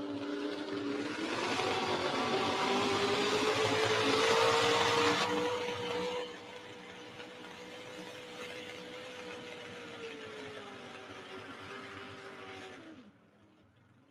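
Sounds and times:
pulling truck engine roaring at full throttle: 0.0s - 7.6s.

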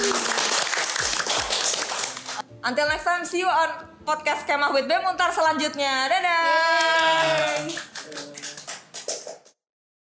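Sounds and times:
audience clapping: 0.0s - 2.4s, 6.5s - 9.6s
speech: 2.6s - 7.9s.

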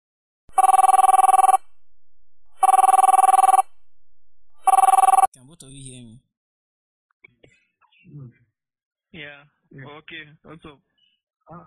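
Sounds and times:
telephone ringing to set up a conference call: 0.5s - 1.8s, 2.5s - 3.8s, 4.6s - 5.3s
speech: 5.6s - 6.3s, 9.2s - 10.9s, 11.5s - 11.6s.

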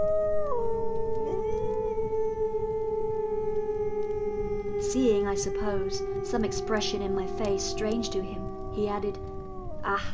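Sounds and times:
wolves howling at night in a valley: 0.0s - 10.0s
speech: 4.9s - 10.1s.

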